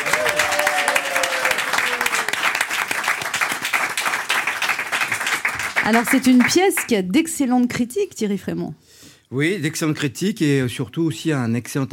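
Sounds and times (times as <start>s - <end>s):
theatre audience applause: 0.0s - 6.9s
speech: 5.9s - 11.9s.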